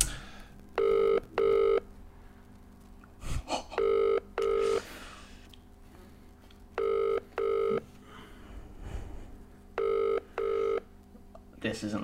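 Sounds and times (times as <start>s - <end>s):
phone call ringing: 0.8s - 1.8s, 3.8s - 4.8s, 6.8s - 7.8s, 9.8s - 10.9s.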